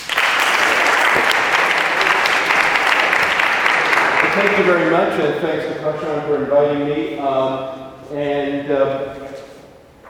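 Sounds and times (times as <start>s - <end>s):
audience applause welcoming a professor: 0.0s - 5.2s
speech: 4.4s - 9.2s.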